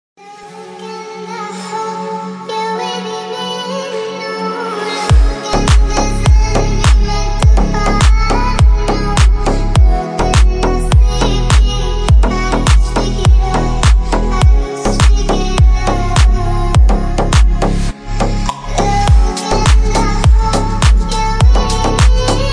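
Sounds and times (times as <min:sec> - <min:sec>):
trending ringtone music: 0:05.1 - 0:22.5.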